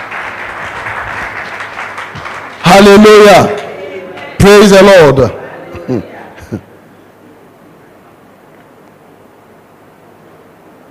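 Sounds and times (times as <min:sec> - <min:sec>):
church audience clapping hands: 0:00.0 - 0:04.8
speech: 0:02.7 - 0:03.6, 0:04.4 - 0:06.7.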